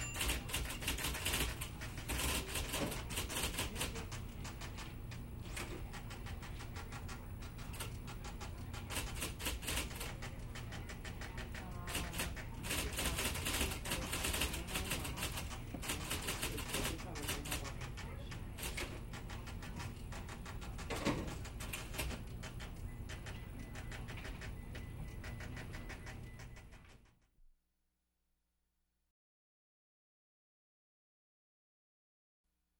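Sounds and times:
typewriter typing in office work: 0:00.0 - 0:27.1.

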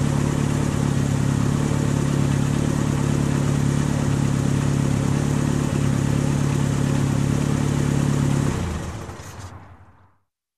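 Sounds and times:
car engine ignition and running idle: 0:00.0 - 0:10.0.

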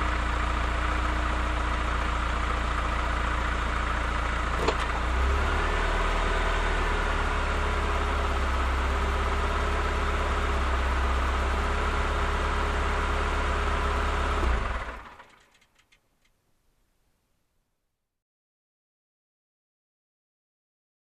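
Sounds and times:
car approaching and parking: 0:00.0 - 0:16.4.

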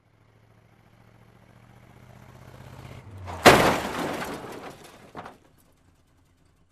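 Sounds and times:
car approaching: 0:00.0 - 0:06.6
car crash: 0:03.1 - 0:05.8.

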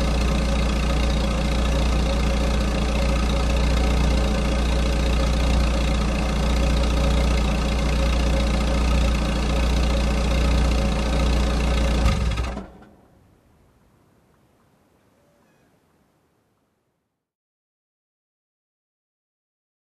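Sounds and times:
old car approaching and parking: 0:00.0 - 0:13.2.

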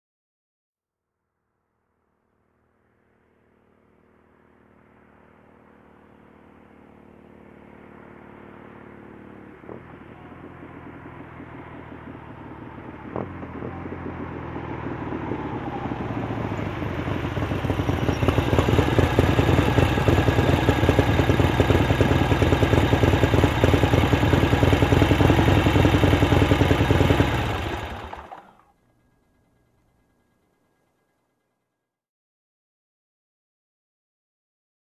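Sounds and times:
motorcycle approaching and parking: 0:02.3 - 0:31.1.

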